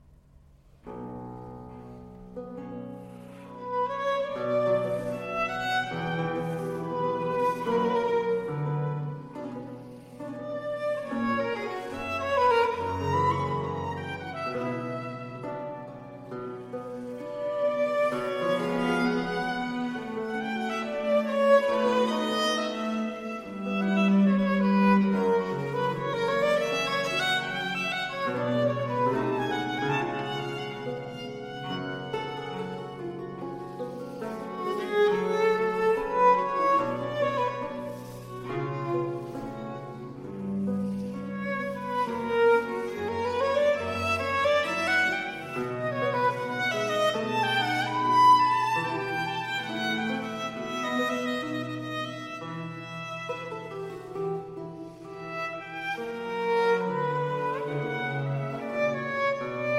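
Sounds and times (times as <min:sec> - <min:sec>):
violin and strings concerto in G minor largo: 0:02.0 - 0:59.7.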